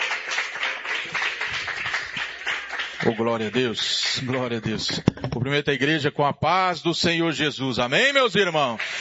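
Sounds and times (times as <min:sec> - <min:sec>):
church congregation clapping rhythmically welcoming a preacher: 0:00.0 - 0:05.3, 0:08.0 - 0:08.9
speech: 0:03.0 - 0:08.9.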